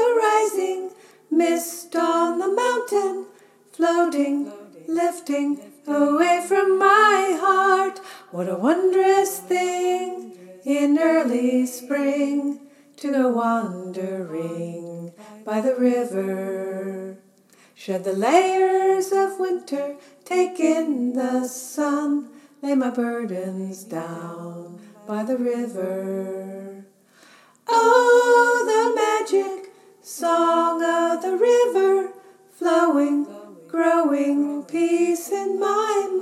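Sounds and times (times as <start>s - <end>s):
choir upper part singing: 0.0s - 17.2s, 17.9s - 26.9s, 27.6s - 36.2s.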